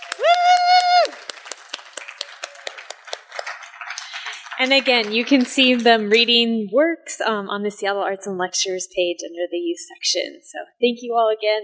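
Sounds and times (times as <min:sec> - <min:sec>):
applause for writers: 0:00.0 - 0:06.4
speech: 0:04.6 - 0:11.6.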